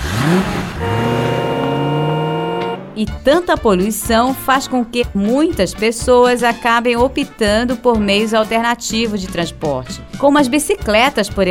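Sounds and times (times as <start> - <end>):
loud car engine humming: 0.0 - 3.4
street traffic: 0.0 - 5.0
speech: 3.0 - 11.4.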